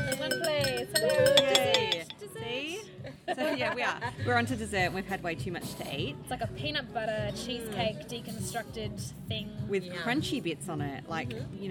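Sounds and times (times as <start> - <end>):
clinking glasses, cutlery and dishes in a restaurant: 0.0 - 2.3
overlapping restaurant dinner conversation: 0.0 - 11.6
speech: 3.6 - 11.7.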